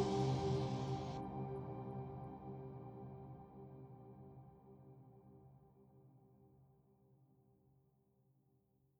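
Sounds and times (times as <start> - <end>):
dark ambient trip hop music: 0.0 - 1.7.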